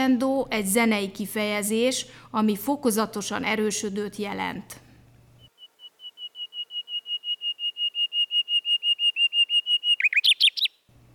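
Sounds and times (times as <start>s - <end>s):
speech: 0.0s - 4.8s
common nightingale singing piping whistles and warbled flourish: 5.4s - 10.9s.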